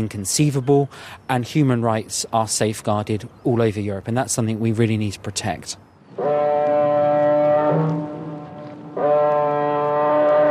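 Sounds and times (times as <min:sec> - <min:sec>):
speech: 0:00.0 - 0:06.5
car ferry foghorn in fog: 0:06.1 - 0:10.4.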